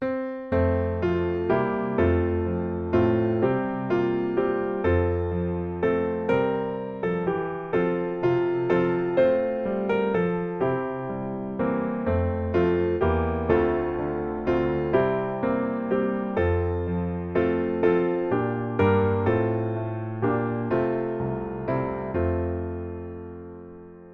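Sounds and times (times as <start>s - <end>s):
piano: 0.0s - 24.1s.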